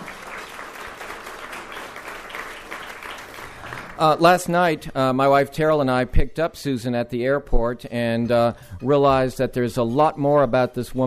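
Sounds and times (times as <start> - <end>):
audience applause: 0.0 - 4.2
speech: 4.0 - 11.0.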